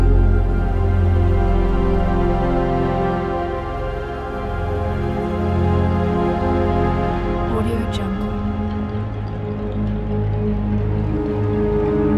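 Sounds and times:
orchestral ambient soundscape: 0:00.0 - 0:12.1.

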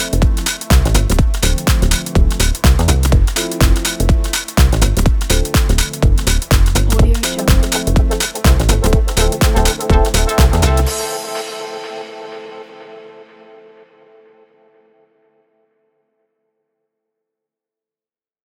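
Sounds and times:
chill out lounge music: 0:00.0 - 0:13.8.

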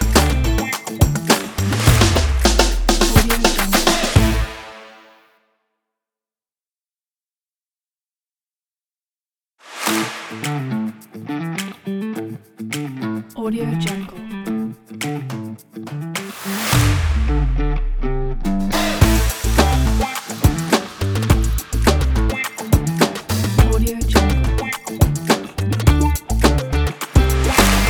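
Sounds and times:
funk background music: 0:00.0 - 0:04.7, 0:09.9 - 0:14.1, 0:15.0 - 0:27.8.

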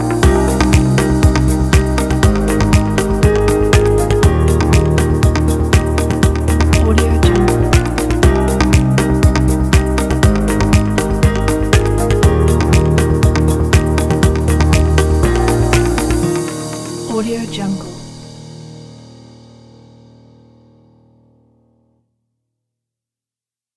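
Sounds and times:
corporate upbeat drum kit: 0:00.2 - 0:19.0.

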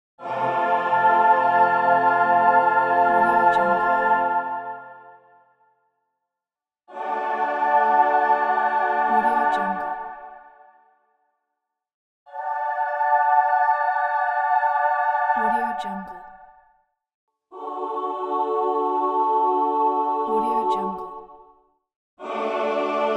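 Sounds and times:
religious revival music: 0:00.2 - 0:05.3, 0:06.9 - 0:10.6, 0:12.3 - 0:16.2, 0:17.5 - 0:20.9, 0:22.2 - 0:23.1.

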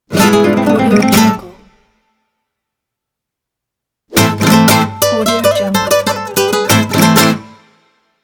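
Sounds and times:
Spanish guitar logo intro: 0:00.1 - 0:01.7, 0:04.1 - 0:07.7.

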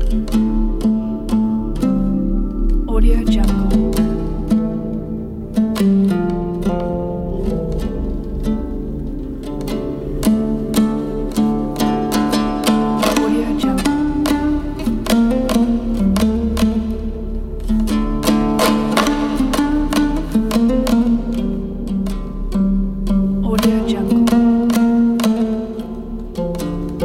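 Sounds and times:
Kazakh dombyra: 0:00.0 - 0:27.0.

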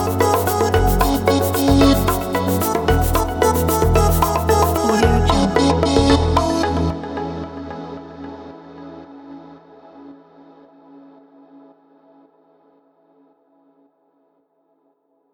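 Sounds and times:
dark chill lounge house music: 0:00.0 - 0:09.9.

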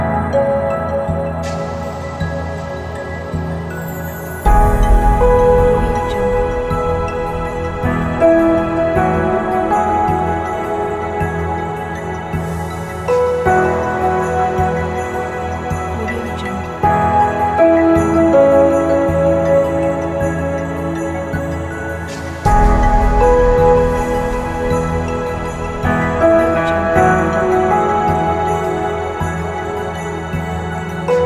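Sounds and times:
documentary soundscape piano: 0:00.0 - 0:31.2.

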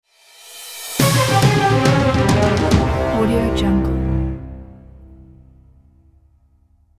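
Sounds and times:
quiz show next level logo jingle: 0:01.0 - 0:05.4.

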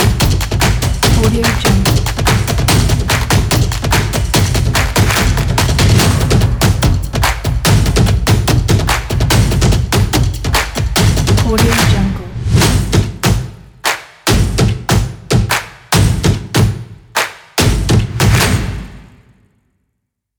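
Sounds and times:
energetic claps: 0:00.0 - 0:19.1
energetic percussion stomps: 0:00.0 - 0:19.3.

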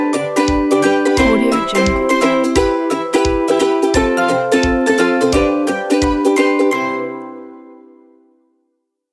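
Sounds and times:
funny carnival music: 0:00.1 - 0:06.8.

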